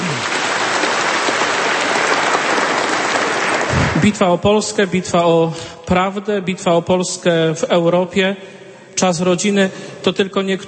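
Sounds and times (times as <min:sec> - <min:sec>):
audience applause: 0:00.0 - 0:04.4
speech: 0:04.0 - 0:10.6.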